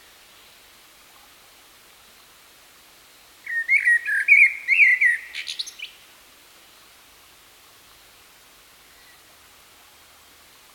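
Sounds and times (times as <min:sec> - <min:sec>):
common blackbird song: 0:03.4 - 0:06.0.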